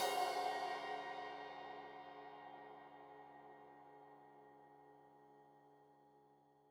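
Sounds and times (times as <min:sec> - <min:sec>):
15 inch crash cymbal edge hit: 0:00.0 - 0:02.6.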